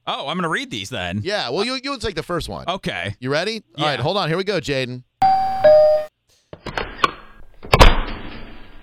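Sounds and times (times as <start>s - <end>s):
speech: 0.1s - 5.9s
bright electronic doorbell chime: 5.2s - 6.1s.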